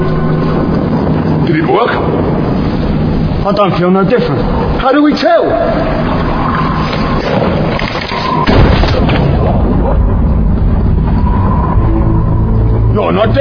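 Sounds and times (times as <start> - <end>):
loud dense rumbling background: 0.0 - 13.4
speech: 1.8 - 2.5, 3.4 - 6.2, 13.0 - 13.4
gunshot: 7.3 - 9.9.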